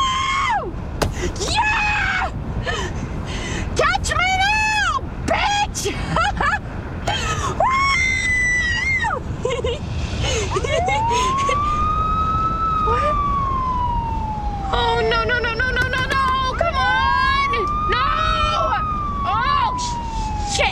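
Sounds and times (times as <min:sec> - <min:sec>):
low rumble of road noise: 0:00.0 - 0:20.7
police car siren: 0:10.6 - 0:20.7.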